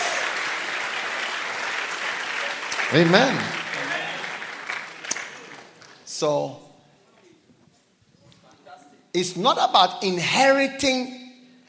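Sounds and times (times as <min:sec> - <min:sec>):
audience applause: 0:00.0 - 0:06.0
speech: 0:02.9 - 0:03.6, 0:06.2 - 0:06.6, 0:09.2 - 0:11.2.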